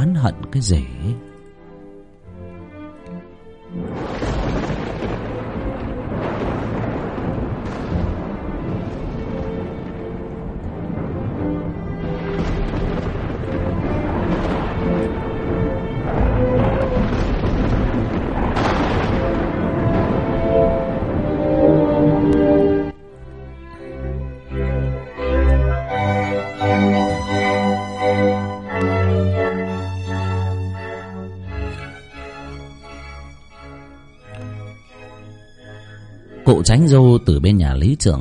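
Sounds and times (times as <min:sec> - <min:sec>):
speech: 0:00.2 - 0:01.3, 0:36.7 - 0:38.1
dry thunder rumbling on a hot day with no rain: 0:03.7 - 0:32.0.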